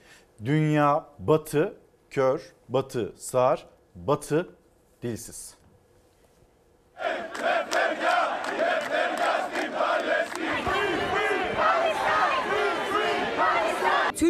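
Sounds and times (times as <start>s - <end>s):
speech: 0.4s - 5.6s
large protest crowd chanting in unison: 7.0s - 14.2s.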